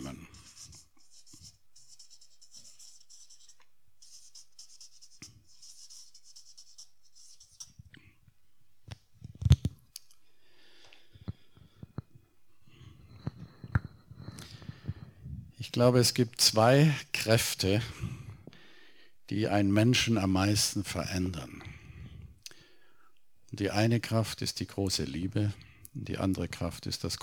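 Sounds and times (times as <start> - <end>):
pen scratching writing handwritten notes: 0.0 - 7.8
speech: 15.7 - 18.1, 19.3 - 21.6, 23.6 - 27.2.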